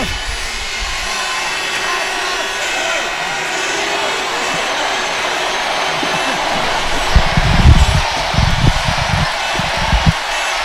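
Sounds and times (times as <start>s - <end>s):
crowd roaring and cheering: 0.0s - 10.6s
laughter: 0.0s - 10.6s.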